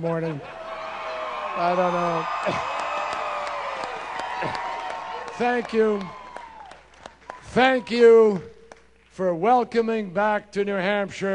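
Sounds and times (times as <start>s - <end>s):
speech: 0.0s - 0.6s, 1.6s - 2.8s, 4.4s - 4.7s, 5.4s - 6.2s, 7.5s - 8.5s, 9.2s - 11.3s
enthusiastic crowd cheering at a presidential campaign rally in New Hampshire: 0.4s - 7.9s
whoops: 0.5s - 7.4s
scattered claps: 2.4s - 7.4s.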